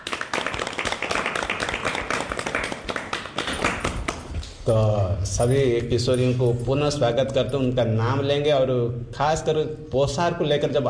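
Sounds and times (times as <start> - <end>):
group clapping to welcome girls: 0.0 - 4.6
speech: 4.7 - 10.8.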